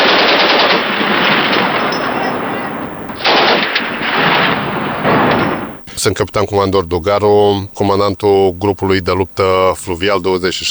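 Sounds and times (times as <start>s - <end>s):
gunfire during a live-fire military exercise: 0.0s - 5.9s
speech: 6.0s - 10.6s.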